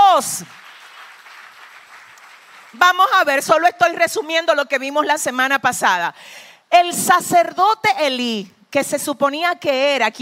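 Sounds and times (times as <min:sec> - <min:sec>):
audience applauding: 0:00.0 - 0:02.9
speech: 0:00.2 - 0:00.7, 0:02.7 - 0:10.2.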